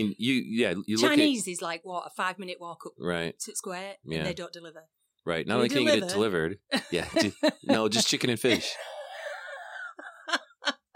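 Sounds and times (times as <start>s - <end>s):
speech: 0.0s - 9.0s
laughter: 5.6s - 10.9s
smoker's cough: 8.4s - 9.1s.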